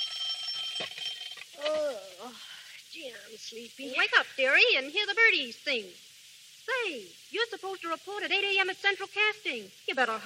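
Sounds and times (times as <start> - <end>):
alarm clock ringing: 0.0 - 1.4
speech: 1.6 - 10.2.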